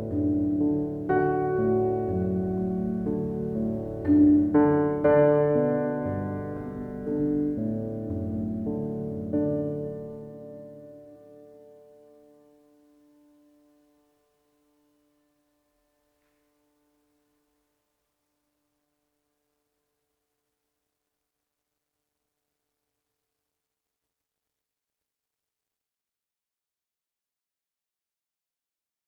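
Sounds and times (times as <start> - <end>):
ambient piano: 0.0 - 15.4.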